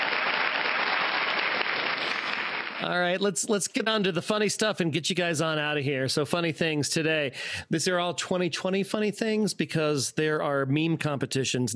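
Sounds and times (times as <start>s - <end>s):
big applause: 0.0s - 3.2s
speech: 2.8s - 11.7s.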